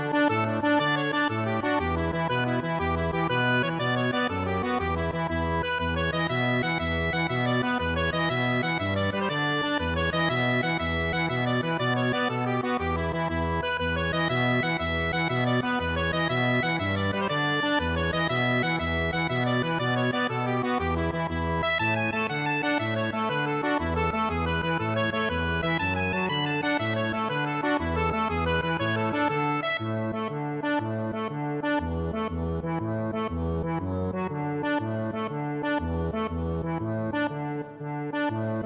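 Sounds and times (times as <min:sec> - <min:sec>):
Irish jig medley on accordion: 0:00.0 - 0:38.6.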